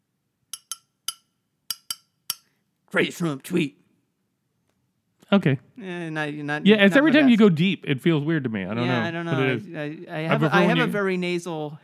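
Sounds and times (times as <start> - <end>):
glass clinking: 0.6 - 2.5
speech: 2.9 - 3.8, 5.3 - 11.8.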